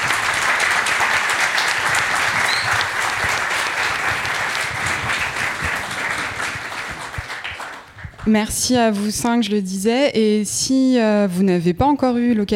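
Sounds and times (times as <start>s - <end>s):
audience applause: 0.0s - 8.3s
speech: 8.2s - 12.5s.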